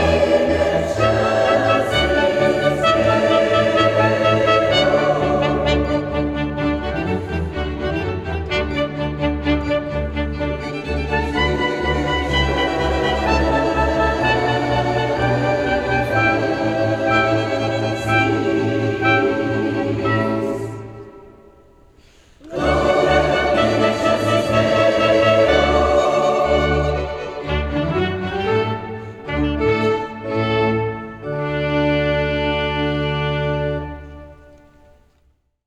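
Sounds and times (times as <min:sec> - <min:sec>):
box organ playing: 0:00.0 - 0:21.5, 0:22.5 - 0:34.8
choir singing: 0:00.0 - 0:34.9.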